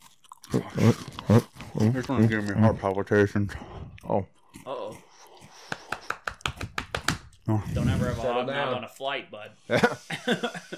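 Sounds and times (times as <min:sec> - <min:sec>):
person chewing a dry cookie: 0:00.0 - 0:07.5
moist mouth sounds: 0:00.0 - 0:08.3
speech: 0:00.5 - 0:04.8, 0:07.5 - 0:10.7
laughter: 0:09.7 - 0:10.7.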